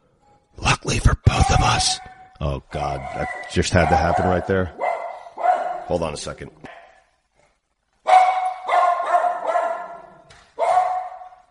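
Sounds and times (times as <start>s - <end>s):
dog barking at a solicitor at the door: 1.3s - 2.3s, 2.9s - 6.0s, 8.0s - 11.4s
speech: 1.8s - 4.9s, 5.9s - 6.7s.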